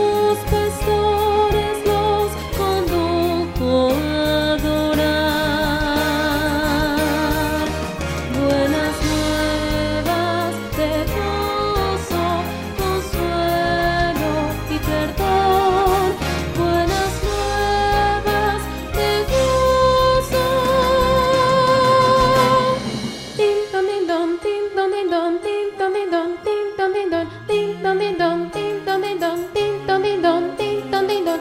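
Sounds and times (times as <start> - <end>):
contralto singing: 0.0 - 31.3.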